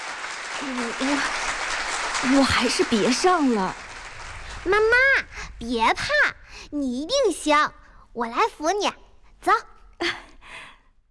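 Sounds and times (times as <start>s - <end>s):
crowd applause: 0.0s - 6.1s
speech: 0.6s - 1.5s, 2.2s - 3.8s, 4.6s - 10.3s.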